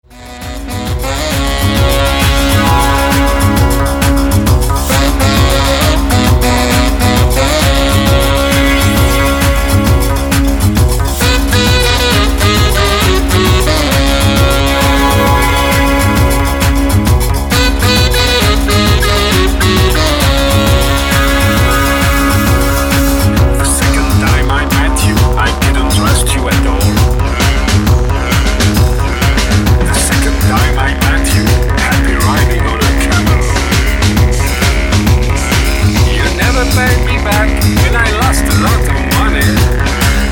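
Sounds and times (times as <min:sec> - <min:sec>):
urban Gnawa music: 0:00.1 - 0:40.2.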